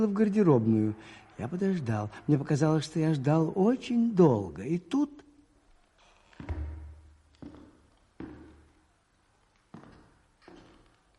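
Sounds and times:
speech: 0.0s - 5.2s, 6.4s - 6.7s
man's slow footsteps in creaking shoes: 5.7s - 11.1s.

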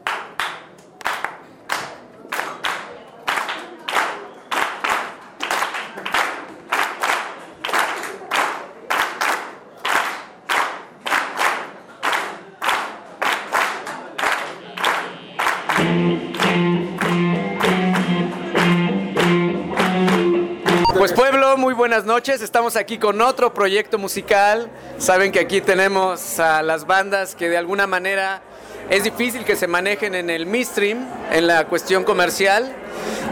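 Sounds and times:
audience clapping along in a steady rhythm at a live music concert: 0.0s - 21.1s
instrumental music: 15.7s - 21.2s
speech: 21.9s - 33.3s.

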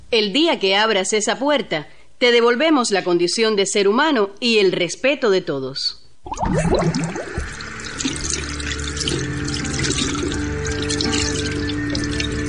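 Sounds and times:
speech: 0.1s - 7.3s
soft tonal hum: 6.3s - 12.4s
water running from a tap: 6.3s - 12.4s.

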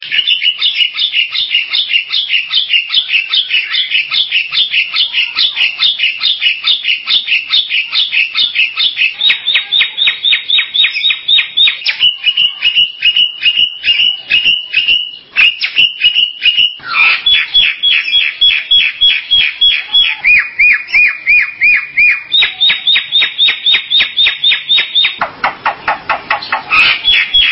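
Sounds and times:
Bali myna chirping: 0.0s - 27.5s.

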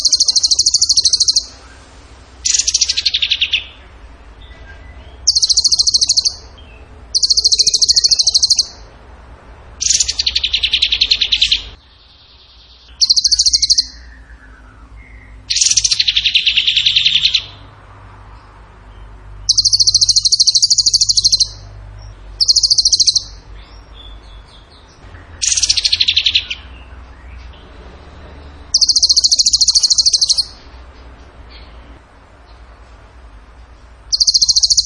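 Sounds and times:
bird singing fast shrill rattling trills: 0.0s - 3.7s, 5.2s - 6.5s, 7.1s - 8.8s, 9.8s - 11.8s, 13.0s - 14.2s, 15.5s - 17.5s, 19.5s - 21.6s, 22.4s - 23.4s, 25.4s - 26.7s, 28.7s - 30.6s, 34.1s - 34.8s.

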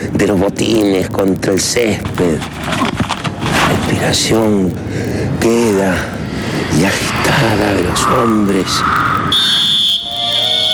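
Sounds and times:
speech: 0.2s - 9.6s
referee whistle blast: 9.0s - 10.7s.

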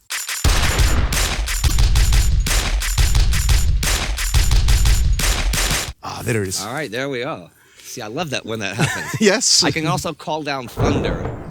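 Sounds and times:
drum beat made from gunshot samples: 0.1s - 6.0s
speech: 6.3s - 11.4s
laughter: 8.7s - 10.0s.

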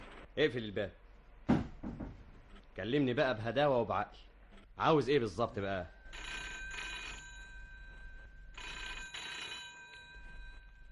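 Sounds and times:
speech: 0.4s - 1.0s, 2.8s - 6.2s
old-style telephone bell ringing in a button factory: 6.0s - 10.9s.

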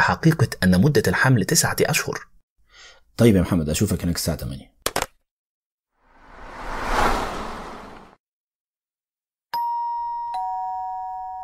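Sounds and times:
speech: 0.0s - 2.3s, 3.2s - 4.7s
doorbell ringing: 9.6s - 11.4s.

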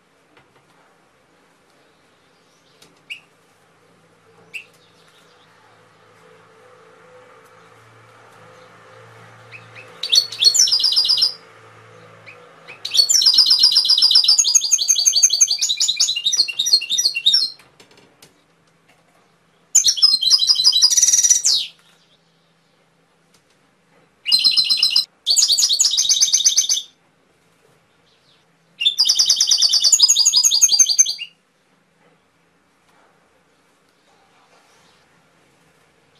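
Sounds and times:
faint low hum: 0.0s - 26.0s, 26.8s - 36.1s
canary singing: 2.4s - 3.4s, 4.4s - 5.8s, 8.4s - 17.6s, 19.7s - 22.6s, 24.2s - 27.0s, 28.1s - 31.4s.

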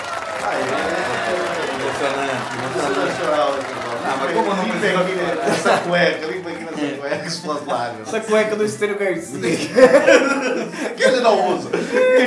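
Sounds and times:
live audience at an awards ceremony cheering: 0.0s - 6.0s
overlapping chatter of live audience at an awards ceremony: 0.0s - 8.0s
laughter: 0.2s - 8.6s, 9.3s - 12.2s
speech: 2.1s - 12.2s.

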